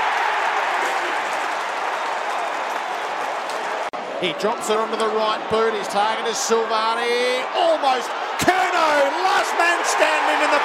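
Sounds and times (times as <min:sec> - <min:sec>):
stadium crowd cheering after goal: 0:00.0 - 0:10.6
speech: 0:04.2 - 0:10.6.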